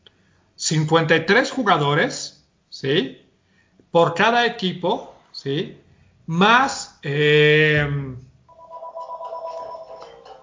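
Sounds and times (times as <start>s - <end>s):
speech: 0.7s - 3.2s, 3.9s - 8.3s
telephone ringing: 8.5s - 10.4s.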